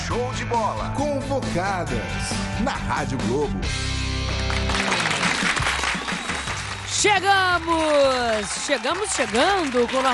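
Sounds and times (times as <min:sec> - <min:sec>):
speech: 0:00.1 - 0:03.9, 0:07.0 - 0:10.1
applause: 0:04.2 - 0:10.1.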